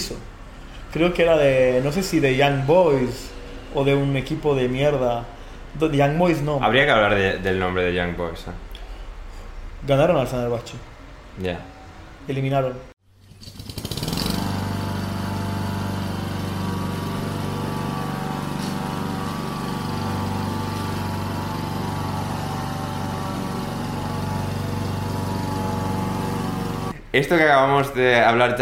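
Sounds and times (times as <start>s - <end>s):
speech: 0.9s - 8.7s, 9.8s - 12.9s, 27.2s - 28.6s
lawn mower engine running: 13.2s - 27.0s.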